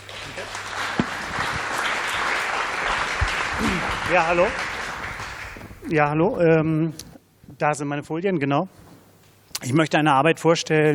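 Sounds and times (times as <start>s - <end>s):
audience applause: 0.0s - 5.8s
speech: 3.6s - 4.7s, 5.9s - 7.0s, 7.6s - 8.8s, 9.6s - 10.9s.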